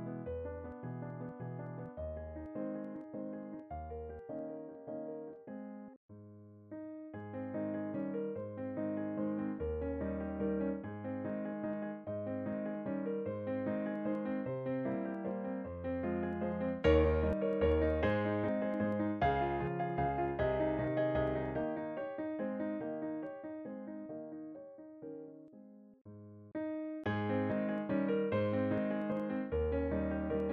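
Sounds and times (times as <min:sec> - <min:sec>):
piano waltz: 0:00.0 - 0:25.9, 0:26.6 - 0:30.5.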